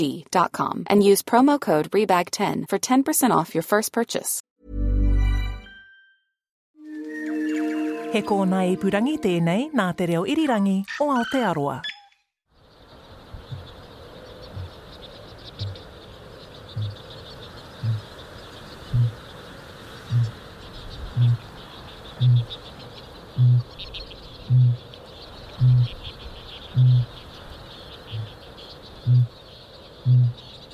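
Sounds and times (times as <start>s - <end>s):
speech: 0.0s - 4.8s, 8.1s - 11.9s
birds chirping: 7.2s - 30.7s
insects: 12.5s - 30.7s
male kākāpō booming call: 13.3s - 13.8s, 14.4s - 14.8s, 15.5s - 15.9s, 16.7s - 17.1s, 17.8s - 18.2s, 18.9s - 19.2s, 20.0s - 20.4s, 21.0s - 21.5s, 22.2s - 22.6s, 23.3s - 24.9s, 25.6s - 27.2s, 28.1s - 28.4s, 29.0s - 29.4s, 30.0s - 30.5s.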